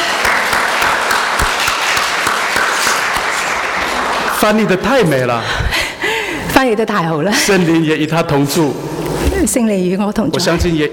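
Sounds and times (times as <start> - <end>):
audience applause: 0.0 - 5.3
speech: 4.4 - 5.9, 6.6 - 10.9.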